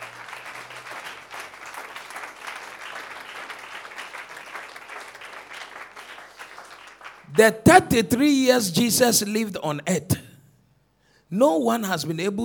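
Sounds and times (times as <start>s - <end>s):
audience clapping: 0.0s - 8.0s
speech: 7.3s - 10.2s, 11.3s - 12.4s.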